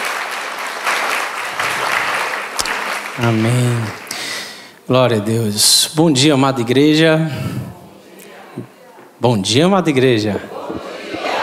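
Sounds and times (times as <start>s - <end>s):
audience applause: 0.0s - 4.7s
speech: 3.2s - 4.0s, 4.9s - 7.6s, 8.6s - 10.5s.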